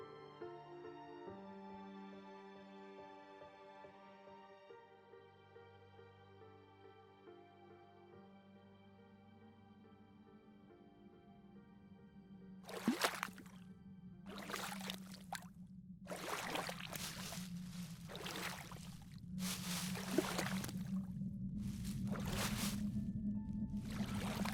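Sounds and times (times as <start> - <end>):
soft rhythmic swishes of water from a boat gliding on a calm river: 12.7 - 13.6, 14.3 - 15.5, 16.1 - 23.0, 23.8 - 24.5
steady low hum: 12.9 - 24.5.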